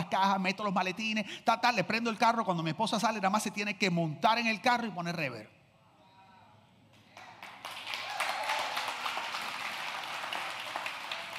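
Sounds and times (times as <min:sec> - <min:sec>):
speech: 0:00.1 - 0:05.6
audience applause: 0:07.2 - 0:11.3.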